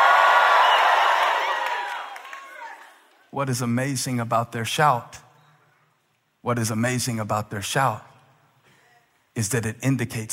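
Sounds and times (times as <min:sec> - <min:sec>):
audience shouting and cheering: 0:00.0 - 0:03.2
speech: 0:03.3 - 0:05.2, 0:06.4 - 0:08.1, 0:09.4 - 0:10.3.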